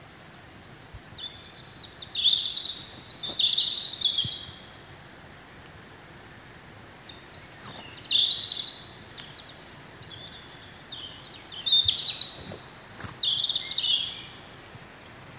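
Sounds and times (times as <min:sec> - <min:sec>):
background hiss: 0:00.0 - 0:15.3
European robin song: 0:00.6 - 0:04.9, 0:07.0 - 0:14.7.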